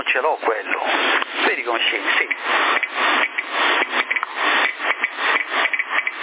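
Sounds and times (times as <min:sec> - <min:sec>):
speech: 0:00.1 - 0:03.2
Geiger counter clicking, detecting radiation: 0:02.3 - 0:06.2.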